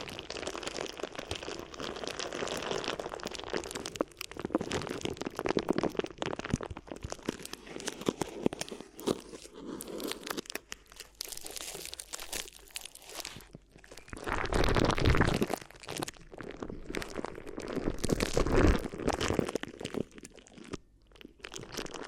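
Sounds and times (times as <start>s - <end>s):
crinkly ear massage: 0.0s - 22.0s.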